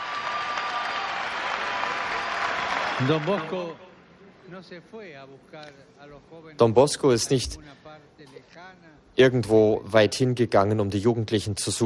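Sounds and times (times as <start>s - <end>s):
audience applause: 0.0s - 3.7s
speech: 3.0s - 3.9s, 4.5s - 11.8s.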